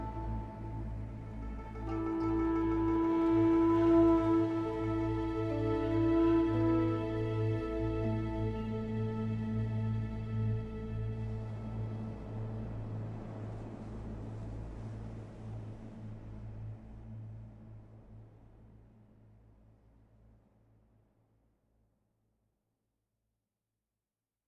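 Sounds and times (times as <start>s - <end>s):
ambient music loop: 0.0s - 13.6s.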